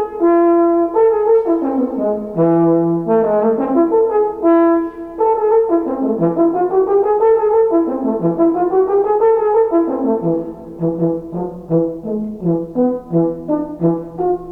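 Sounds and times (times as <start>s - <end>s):
french horn: 0.0s - 14.5s.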